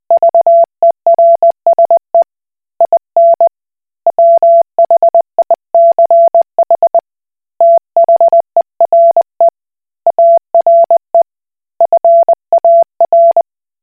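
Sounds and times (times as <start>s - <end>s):
Koch Morse code beeps: 0.2s - 2.0s, 2.8s - 3.5s, 4.1s - 7.0s, 7.6s - 9.5s, 10.1s - 11.2s, 11.8s - 13.4s.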